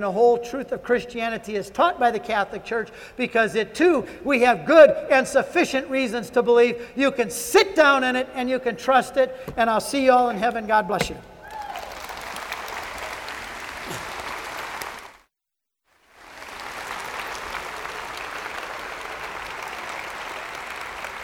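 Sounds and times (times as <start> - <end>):
speech: 0.0 - 11.3
audience applause: 11.4 - 15.2, 16.1 - 21.2.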